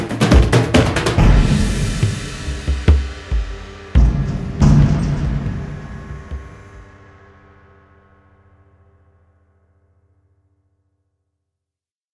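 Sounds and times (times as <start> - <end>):
percussion: 0.0 - 7.8.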